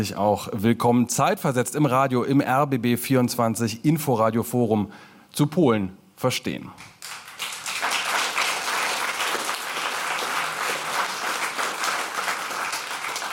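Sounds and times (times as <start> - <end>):
speech: 0.0 - 6.9
audience applause in a packed hall: 7.0 - 13.3.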